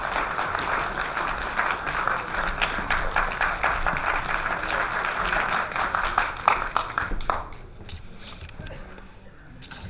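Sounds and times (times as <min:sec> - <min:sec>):
audience applause: 0:00.0 - 0:07.7.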